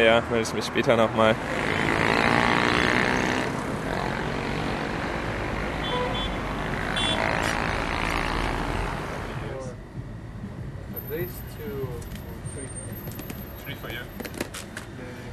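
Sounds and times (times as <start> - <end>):
speech: 0.0 - 2.5
street traffic noise: 0.0 - 15.3.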